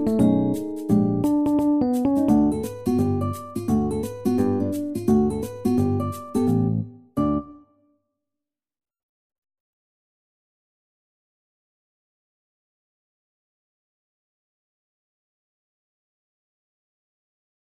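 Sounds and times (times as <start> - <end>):
MIDI music: 0.0 - 7.6.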